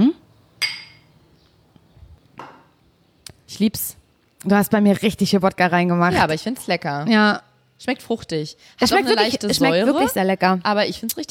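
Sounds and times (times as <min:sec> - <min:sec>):
glasses of a mixed vodka drink clinking in a toast on a summer day: 0:00.6 - 0:01.1
speech: 0:03.6 - 0:11.2.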